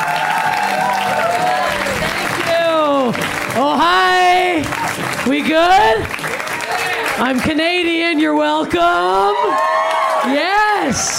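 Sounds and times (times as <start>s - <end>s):
audience cheering: 0.0s - 7.4s, 8.8s - 11.1s
audience applause: 0.0s - 11.1s
speech: 7.2s - 11.1s.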